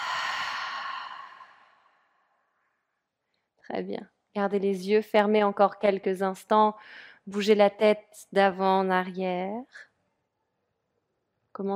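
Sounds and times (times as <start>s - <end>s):
deep exhale through the mouth during a guided meditation breathing exercise: 0.0s - 2.0s
speech: 3.7s - 9.9s, 11.6s - 11.7s.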